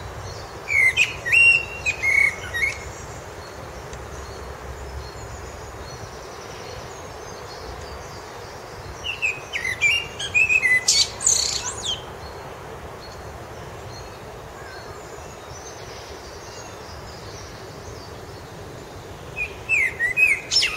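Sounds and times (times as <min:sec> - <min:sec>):
blackbird singing: 0:00.3 - 0:04.4, 0:05.0 - 0:12.1, 0:19.4 - 0:20.7.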